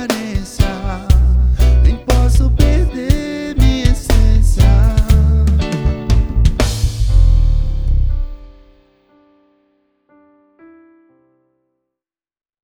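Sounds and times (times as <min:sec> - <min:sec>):
reggae bass sample: 0:00.0 - 0:08.7.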